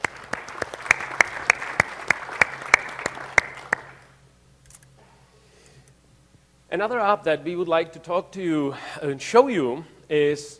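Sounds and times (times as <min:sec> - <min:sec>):
audience applause: 0:00.0 - 0:04.1
speech: 0:06.7 - 0:10.5.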